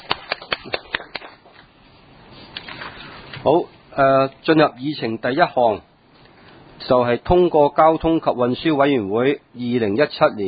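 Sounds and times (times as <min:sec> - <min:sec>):
audience clapping hands: 0:00.0 - 0:01.6
speech: 0:03.4 - 0:05.9, 0:06.8 - 0:10.4.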